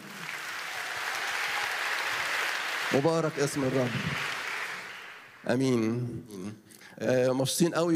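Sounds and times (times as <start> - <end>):
church congregation applauding to greet the Lord: 0.0 - 5.8
speech: 2.9 - 4.4, 5.4 - 7.9.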